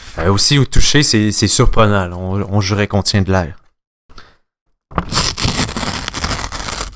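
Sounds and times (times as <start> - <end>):
speech: 0.2 - 3.6
Conigua rice rolling paper being rubbed: 5.2 - 6.9.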